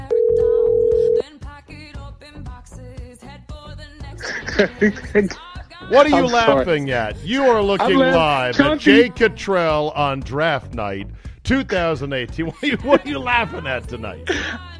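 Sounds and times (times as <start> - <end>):
telephone ringing tone of a call being placed: 0.1 - 1.2
laughter: 4.2 - 5.4, 6.0 - 9.1, 12.4 - 14.7
speech: 4.6 - 14.7.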